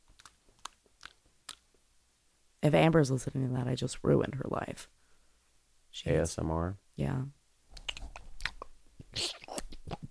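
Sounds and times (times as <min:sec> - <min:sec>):
gum chewing with the mouth open: 0:00.0 - 0:01.8, 0:07.7 - 0:10.0
speech: 0:02.6 - 0:05.0, 0:06.0 - 0:07.4.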